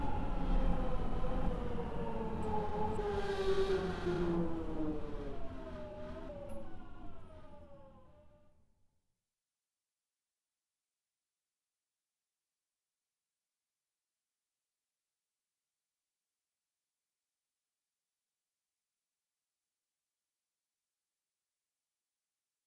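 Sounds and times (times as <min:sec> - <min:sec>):
tube train: 0:00.0 - 0:08.0.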